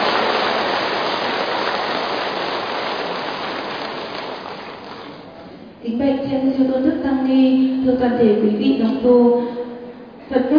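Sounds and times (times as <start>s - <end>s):
long loud applause from the audience: 0.0s - 5.3s
speech: 5.8s - 9.6s.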